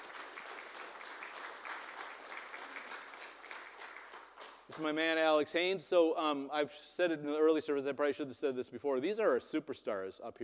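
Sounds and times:
audience applause: 0:00.0 - 0:04.6
speech: 0:04.8 - 0:10.4.

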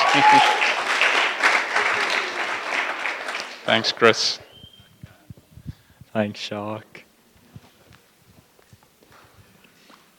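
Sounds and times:
audience clapping: 0:00.0 - 0:04.4
speech: 0:00.2 - 0:00.7, 0:03.7 - 0:04.4, 0:06.2 - 0:07.0.

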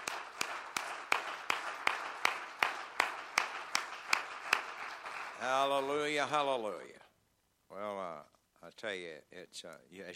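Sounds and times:
audience clapping hands: 0:00.0 - 0:06.6
speech: 0:05.4 - 0:07.0, 0:07.7 - 0:10.1.

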